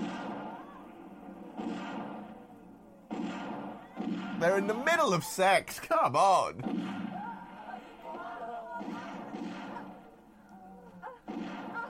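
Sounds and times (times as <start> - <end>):
pistol gunshots: 0.0 - 4.9, 6.6 - 7.8, 8.7 - 10.2, 11.2 - 11.8
speech: 4.4 - 7.0.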